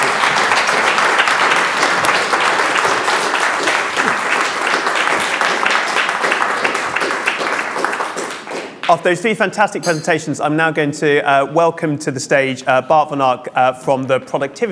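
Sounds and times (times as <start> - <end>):
audience applause: 0.0 - 8.8
speech: 8.9 - 14.7.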